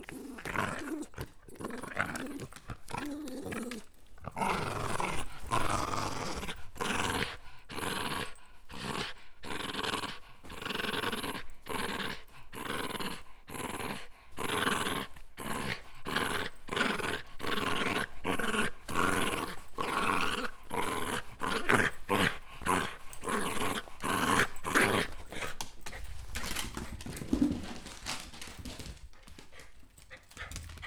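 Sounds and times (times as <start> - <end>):
Shiba Inu play growling: 0.0 - 30.8.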